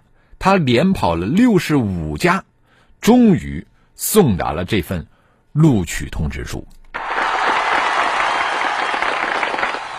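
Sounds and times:
speech: 0:00.4 - 0:06.8
applause: 0:07.0 - 0:09.9.

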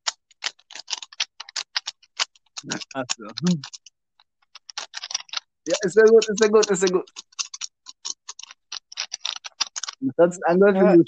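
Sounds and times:
plastic clicks and snaps from a Rubik's Cube being twisted: 0:00.0 - 0:10.0
speech: 0:02.6 - 0:03.8, 0:05.6 - 0:07.3, 0:10.2 - 0:11.0.

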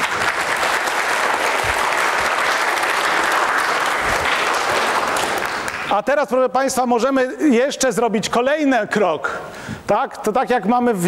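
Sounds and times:
audience applause: 0:00.0 - 0:05.9
speech: 0:05.9 - 0:11.0.

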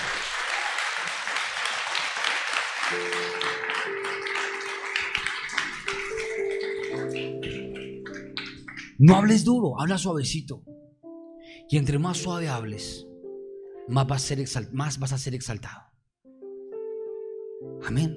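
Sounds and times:
audience applause: 0:00.0 - 0:08.9
speech: 0:02.9 - 0:03.2, 0:09.0 - 0:10.7, 0:11.7 - 0:13.1, 0:13.9 - 0:15.8, 0:17.9 - 0:18.1.

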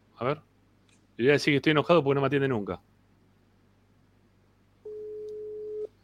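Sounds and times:
faint low hum: 0:00.0 - 0:06.0
speech: 0:00.2 - 0:00.5, 0:01.2 - 0:02.9
ringback tone on an outgoing phone call: 0:04.9 - 0:05.9.

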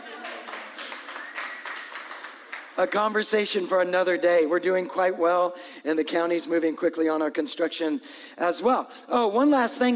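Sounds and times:
audience clapping: 0:00.0 - 0:03.2
speech: 0:02.8 - 0:09.9.

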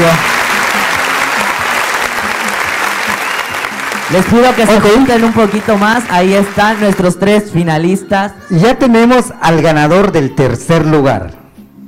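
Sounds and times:
audience applause at a pageant: 0:00.0 - 0:07.3
speech: 0:04.1 - 0:11.4.

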